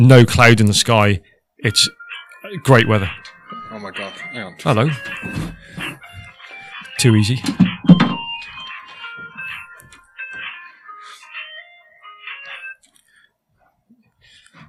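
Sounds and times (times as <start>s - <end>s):
speech: 0.0s - 3.2s, 3.8s - 6.0s, 7.0s - 8.1s
mobile phone ringing: 1.7s - 13.2s.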